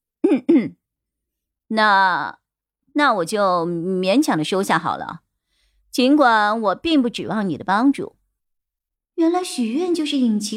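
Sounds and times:
person coughing: 0:00.2 - 0:00.8
speech: 0:00.3 - 0:00.8, 0:01.7 - 0:02.4, 0:03.0 - 0:05.2, 0:06.0 - 0:08.2, 0:09.2 - 0:10.5.

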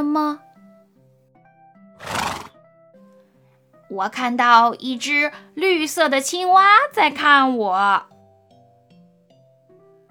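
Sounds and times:
speech: 0:00.0 - 0:00.4, 0:03.9 - 0:08.1
soft music: 0:00.0 - 0:10.1
horse neighing: 0:02.0 - 0:02.6.

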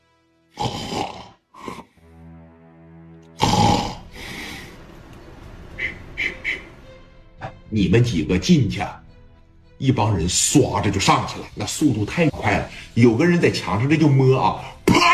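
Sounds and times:
person imitating loud snoring: 0:00.6 - 0:02.0, 0:03.4 - 0:04.7
speech: 0:07.7 - 0:09.0, 0:09.8 - 0:15.0.

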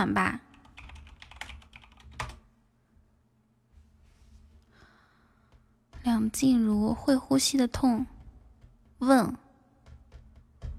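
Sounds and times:
speech: 0:00.0 - 0:00.5, 0:06.1 - 0:08.1, 0:09.0 - 0:09.4
typing on a computer keyboard to search for songs: 0:00.5 - 0:02.4.

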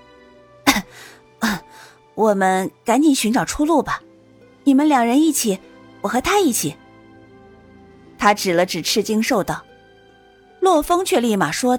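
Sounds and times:
low cough: 0:00.7 - 0:01.6
speech: 0:02.2 - 0:04.1, 0:04.7 - 0:06.8, 0:08.2 - 0:09.7, 0:10.6 - 0:11.7.

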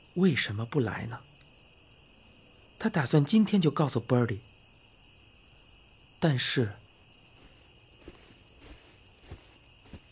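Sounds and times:
speech: 0:00.2 - 0:01.3, 0:02.8 - 0:04.5, 0:06.2 - 0:06.8
footsteps approaching from behind: 0:07.3 - 0:10.1.

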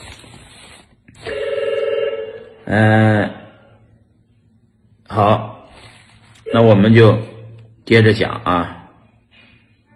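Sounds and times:
telephone ringing: 0:01.2 - 0:02.7
speech: 0:02.7 - 0:03.4, 0:06.6 - 0:07.3, 0:07.9 - 0:08.8.

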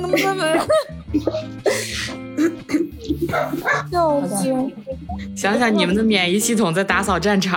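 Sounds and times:
laughter: 0:00.0 - 0:06.0
speech: 0:00.1 - 0:02.2, 0:03.3 - 0:07.5
harsh coughing: 0:01.1 - 0:03.9.

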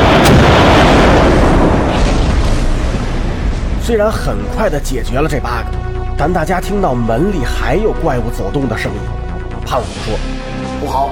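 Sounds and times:
cannons firing: 0:00.0 - 0:04.9
speech: 0:03.9 - 0:11.1.

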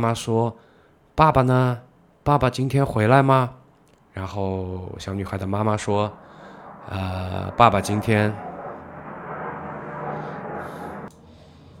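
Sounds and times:
speech: 0:00.0 - 0:03.6, 0:04.2 - 0:06.2, 0:06.9 - 0:08.5
airplane flying overhead: 0:04.2 - 0:11.7.

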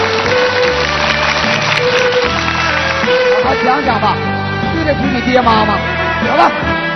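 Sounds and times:
crowd clapping: 0:00.0 - 0:04.8
speech: 0:05.2 - 0:06.8.

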